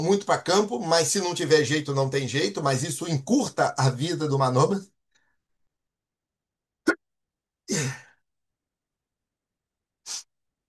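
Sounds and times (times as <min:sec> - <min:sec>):
speech: 0:00.0 - 0:04.9, 0:07.7 - 0:08.0
person sneezing: 0:07.7 - 0:08.0.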